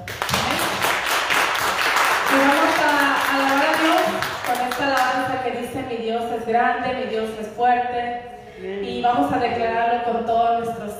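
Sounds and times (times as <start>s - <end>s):
audience applause: 0.0s - 4.8s
speech: 4.6s - 10.9s.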